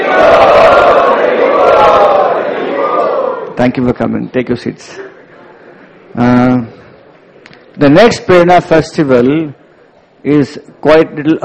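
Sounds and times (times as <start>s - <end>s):
temple congregation chanting in welcome: 0.0s - 3.4s
speech: 3.6s - 5.1s, 6.1s - 6.7s, 7.8s - 9.6s, 10.2s - 11.4s.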